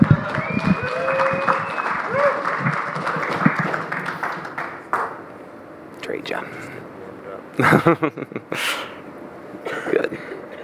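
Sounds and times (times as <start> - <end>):
audience applause: 0.0 - 6.8
laughter: 3.1 - 5.3, 6.0 - 10.6
speech: 7.6 - 8.9.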